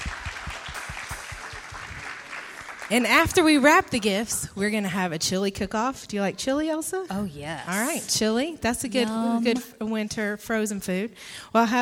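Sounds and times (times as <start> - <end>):
applause from a crowd at an evening church event: 0.0 - 4.5
speech: 2.9 - 11.7.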